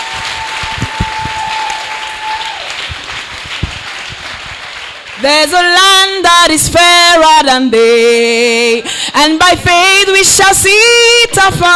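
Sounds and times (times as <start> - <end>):
congregation clapping at a church service: 0.0 - 6.8
speech: 5.2 - 11.7.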